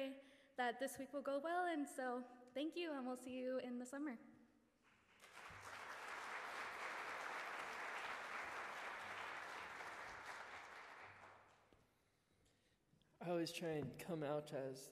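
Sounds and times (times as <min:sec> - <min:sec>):
speech: 0:00.0 - 0:04.3, 0:13.2 - 0:14.9
audience applause: 0:05.1 - 0:11.6.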